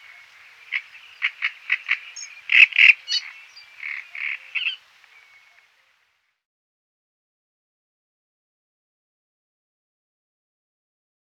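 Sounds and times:
great reed warbler song: 0.0s - 6.2s.

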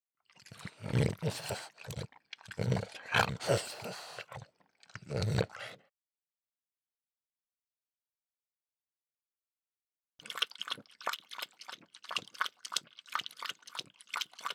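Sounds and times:
French Bulldog lapping water: 0.3s - 5.8s, 10.2s - 14.5s.

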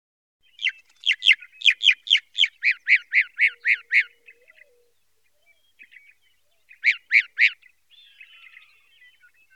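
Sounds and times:
northern mockingbird singing: 0.4s - 9.5s.

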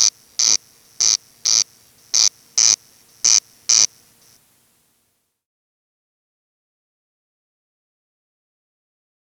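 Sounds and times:
corncrake giving its dry rasping call: 0.0s - 4.1s.

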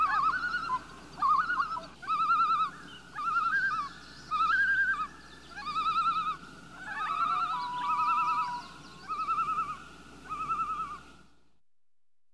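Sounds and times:
loon flight calls: 0.0s - 11.2s.

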